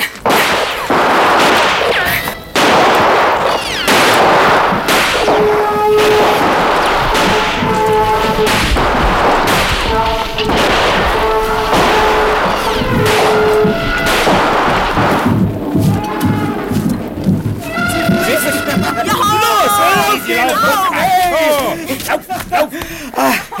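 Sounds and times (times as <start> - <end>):
rifle gunshots: 0.0 - 16.9
rumbling background: 0.1 - 23.5
trumpet-like calls: 0.6 - 21.6
laughter: 17.9 - 23.5.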